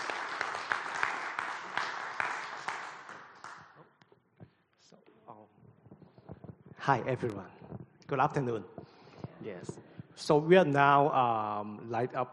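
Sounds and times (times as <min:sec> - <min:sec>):
audience applause: 0:00.0 - 0:03.8
speech: 0:06.8 - 0:08.8, 0:09.4 - 0:12.3.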